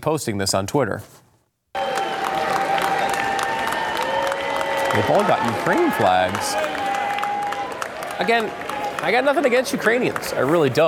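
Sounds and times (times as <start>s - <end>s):
speech: 0.0s - 1.2s, 4.9s - 6.8s, 8.2s - 10.8s
lawmakers applause and cheering in the House chamber: 1.8s - 10.8s.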